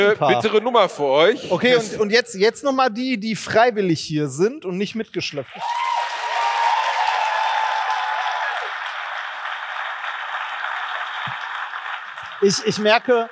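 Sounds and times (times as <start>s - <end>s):
speech: 0.0s - 5.9s, 12.4s - 13.3s
live audience clapping hands: 5.4s - 13.3s.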